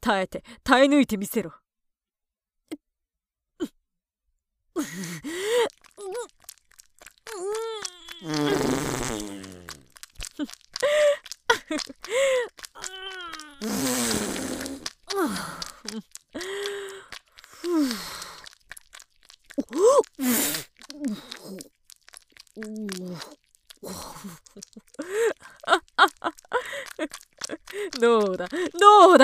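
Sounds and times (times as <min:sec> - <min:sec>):
speech: 0:00.0 - 0:01.6, 0:04.8 - 0:06.4, 0:08.2 - 0:09.4, 0:10.4 - 0:14.4, 0:15.1 - 0:16.7, 0:19.6 - 0:21.7, 0:22.6 - 0:29.2
fart: 0:05.9 - 0:11.4, 0:13.1 - 0:15.7.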